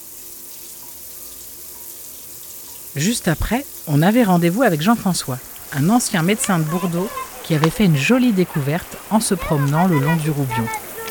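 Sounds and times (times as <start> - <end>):
water running from a tap for a shower at home: 0.0 - 11.0
speech: 2.9 - 10.8
laughter: 3.9 - 11.0.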